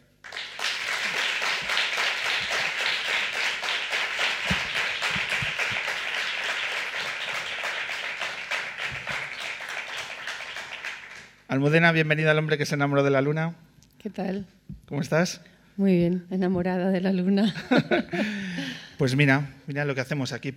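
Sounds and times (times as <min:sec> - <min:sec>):
crowd applauding: 0:00.0 - 0:11.4
speech: 0:11.6 - 0:20.5
laughter: 0:17.4 - 0:18.7.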